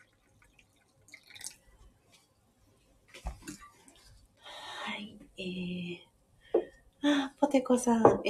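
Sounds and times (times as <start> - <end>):
hand-drip coffee dripping: 0.0 - 1.8
speech: 5.4 - 6.1, 7.1 - 8.2.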